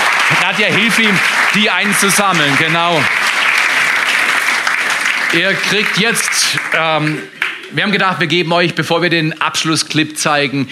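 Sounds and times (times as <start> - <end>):
audience applause: 0.0 - 8.4
speech: 0.5 - 3.2, 5.3 - 10.7.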